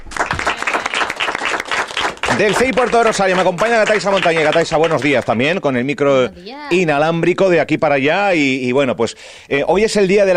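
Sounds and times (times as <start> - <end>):
students applauding: 0.0 - 5.6
speech: 2.4 - 10.3.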